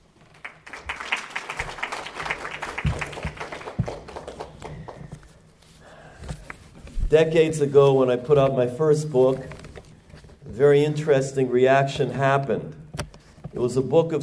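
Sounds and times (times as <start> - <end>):
crowd clapping: 0.0 - 5.4
speech: 7.1 - 9.6, 10.6 - 12.8, 13.5 - 14.2.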